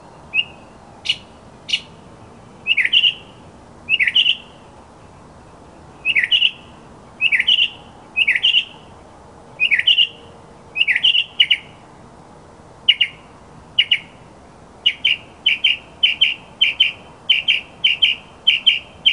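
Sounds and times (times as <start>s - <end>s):
mockingbird singing: 0.3s - 2.0s, 2.6s - 4.6s, 6.0s - 8.8s, 9.6s - 11.8s, 12.9s - 14.2s, 14.8s - 19.1s.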